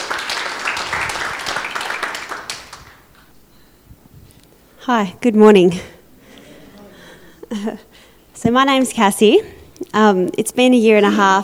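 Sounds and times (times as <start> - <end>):
applause at a church service: 0.0 - 3.3
speech: 4.8 - 5.9, 7.6 - 11.4.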